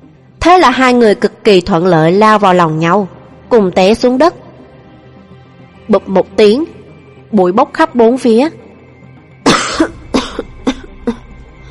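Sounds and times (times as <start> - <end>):
speech: 0.4 - 4.4, 5.9 - 6.7, 7.3 - 8.6
person coughing from choking on dust: 9.5 - 11.3.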